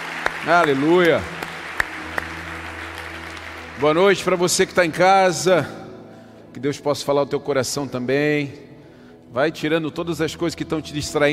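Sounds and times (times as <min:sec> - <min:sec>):
audience applause: 0:00.0 - 0:05.0
speech: 0:00.4 - 0:01.4, 0:03.8 - 0:05.8, 0:06.6 - 0:08.7, 0:09.3 - 0:11.3.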